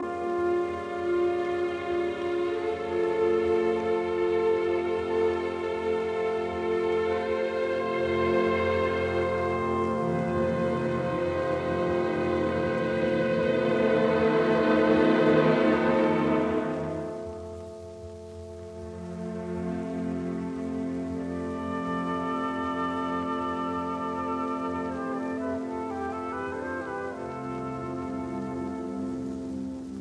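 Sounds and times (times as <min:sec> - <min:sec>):
orchestral symphony in C major: 0:00.0 - 0:29.9.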